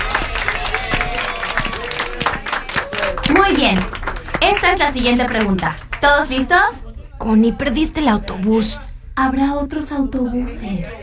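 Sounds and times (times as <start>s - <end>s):
voices cheering: 0.0s - 6.6s
audience applause: 0.0s - 6.7s
speech: 3.5s - 11.0s.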